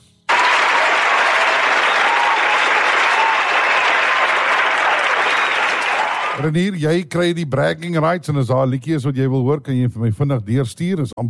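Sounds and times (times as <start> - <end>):
group applause: 0.3 - 6.5
speech: 6.4 - 11.2.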